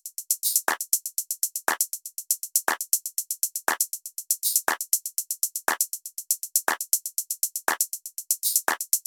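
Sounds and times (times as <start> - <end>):
drum tops: 0.0 - 9.0
percussion: 0.0 - 9.0.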